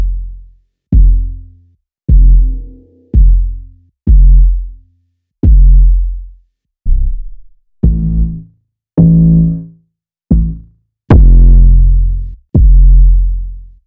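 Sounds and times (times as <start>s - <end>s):
processed kick drum: 0.9s - 1.5s, 2.1s - 4.8s, 5.4s - 6.3s, 7.8s - 8.4s, 9.0s - 9.6s, 10.3s - 13.5s.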